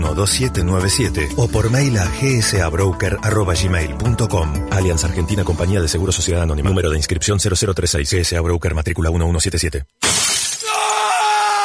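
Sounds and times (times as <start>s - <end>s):
speech: 0.2s - 10.2s
phone screen glass shattering: 10.0s - 11.2s.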